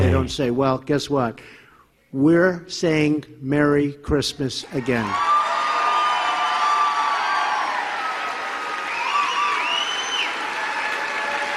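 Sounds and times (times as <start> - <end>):
speech: 0.2 - 5.3
audience applauding: 4.8 - 11.5.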